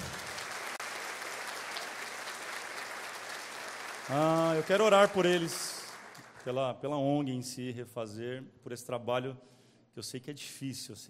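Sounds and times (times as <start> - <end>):
applause: 0.0 - 7.0
speech: 4.1 - 5.8, 6.4 - 11.0.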